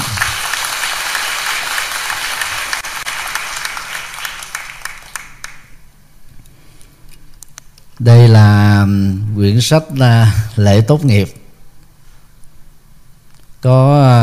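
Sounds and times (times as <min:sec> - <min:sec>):
large crowd applause: 0:00.0 - 0:05.8
speech: 0:08.0 - 0:11.4, 0:13.6 - 0:14.2.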